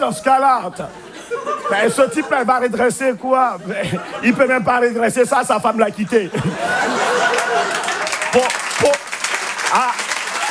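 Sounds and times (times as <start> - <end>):
speech: 0.0 - 9.0
laughter: 0.0 - 10.4
audience applause: 6.7 - 10.4.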